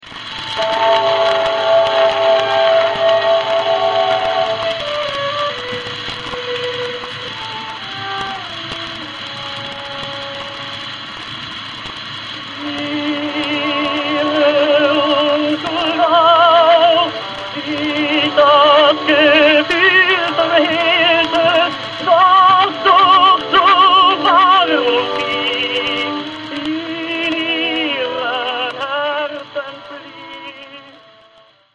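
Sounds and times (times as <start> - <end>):
romance music piece: 0.0 - 31.7.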